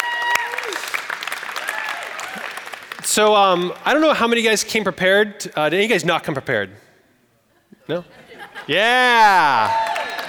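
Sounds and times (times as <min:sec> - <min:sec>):
applause: 0:00.0 - 0:04.1, 0:09.6 - 0:10.2
speech: 0:03.2 - 0:06.8, 0:07.9 - 0:09.9
laughter: 0:07.6 - 0:09.7.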